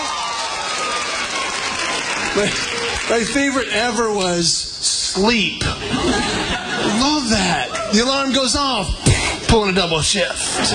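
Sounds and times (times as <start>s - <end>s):
crowd applause: 0.0s - 4.2s
speech: 2.4s - 6.4s, 7.0s - 10.7s
laughter: 5.6s - 10.7s.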